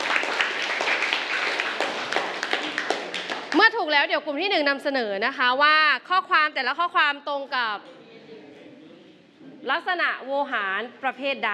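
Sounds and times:
classroom clapping for a group: 0.0s - 3.8s
speech: 3.9s - 8.0s, 9.6s - 11.5s.

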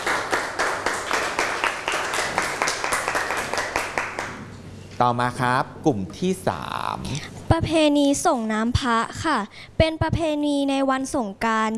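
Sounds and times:
classmates applauding: 0.0s - 4.5s
speech: 5.0s - 11.7s.

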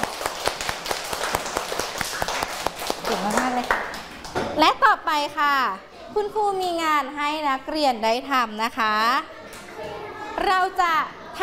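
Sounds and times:
group of children clapping: 0.0s - 4.4s
speech: 3.1s - 3.9s, 4.6s - 9.3s, 10.4s - 11.4s.

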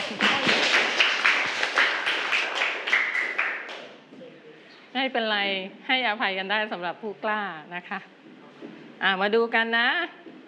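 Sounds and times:
group of children clapping for a classmate: 0.0s - 4.0s
speech: 5.0s - 8.4s, 9.0s - 10.2s.

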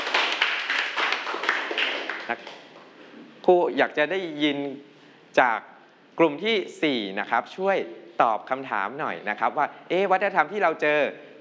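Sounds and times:
classroom students clapping: 0.0s - 2.7s
speech: 2.3s - 2.6s, 3.5s - 11.3s.

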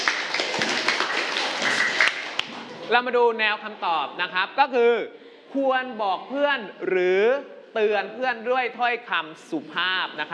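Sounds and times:
classmates in a lesson clapping for a friend: 0.0s - 2.8s
speech: 2.9s - 10.3s.

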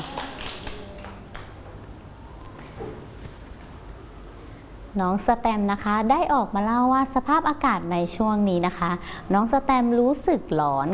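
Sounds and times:
children clapping hands: 0.0s - 1.6s
speech: 5.0s - 10.9s.

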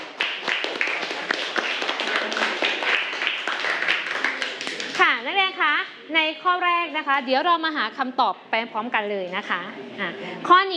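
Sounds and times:
students clapping for a classmate: 0.0s - 5.3s
speech: 5.8s - 10.7s.

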